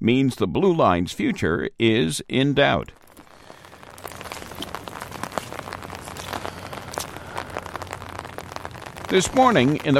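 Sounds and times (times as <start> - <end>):
speech: 0.0 - 3.0, 9.1 - 9.9
rain pattering in a marsh: 2.0 - 9.9.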